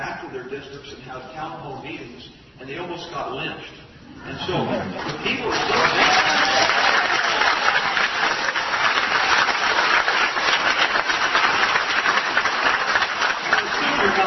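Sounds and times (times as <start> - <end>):
speech: 0.3 - 6.7
town hall crowd applauding: 5.0 - 14.2.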